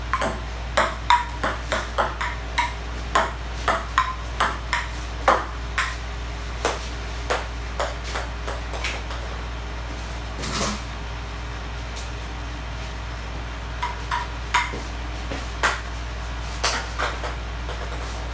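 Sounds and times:
low steady hum: 0:00.0 - 0:18.3
ping pong ball bouncing on small table: 0:00.1 - 0:06.0, 0:06.6 - 0:09.4, 0:13.8 - 0:14.8, 0:15.6 - 0:15.9, 0:16.6 - 0:18.1.

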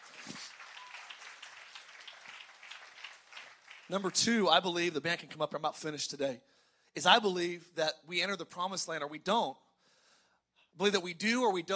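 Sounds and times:
crowd applause: 0:00.0 - 0:04.2
speech: 0:03.9 - 0:09.6, 0:10.8 - 0:11.7.

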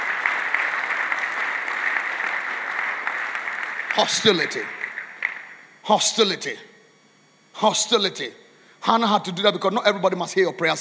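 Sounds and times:
audience clapping: 0:00.0 - 0:05.8
speech: 0:04.0 - 0:04.8, 0:05.9 - 0:06.7, 0:07.6 - 0:10.7.

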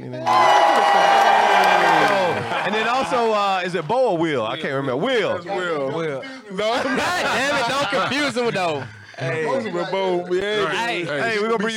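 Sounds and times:
speech: 0:00.1 - 0:00.5, 0:03.1 - 0:11.7
crowd clapping sound effect: 0:00.3 - 0:03.9
laughter: 0:01.7 - 0:03.6, 0:06.4 - 0:09.7.

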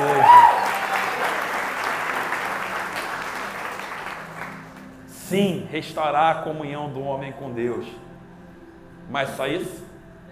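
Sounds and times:
audience applause: 0:00.0 - 0:04.9
speech: 0:05.3 - 0:08.1, 0:09.1 - 0:09.9.

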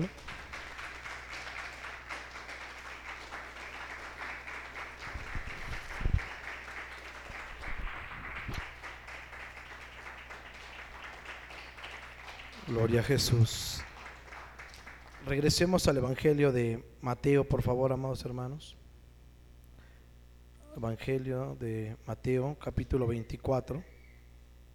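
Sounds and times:
audience applauding: 0:00.0 - 0:15.8
speech: 0:12.7 - 0:13.7, 0:15.3 - 0:18.8, 0:20.8 - 0:23.9.

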